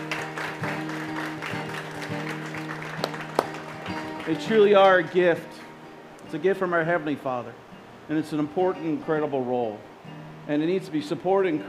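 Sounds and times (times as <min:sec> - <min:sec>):
audience applause for fathers: 0:00.0 - 0:05.2
speech: 0:04.3 - 0:05.6, 0:06.3 - 0:11.6.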